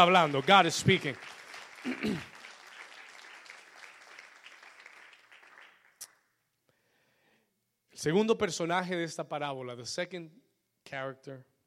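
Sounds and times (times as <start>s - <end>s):
speech: 0.0s - 2.4s, 8.0s - 11.5s
audience applauding: 0.0s - 6.2s.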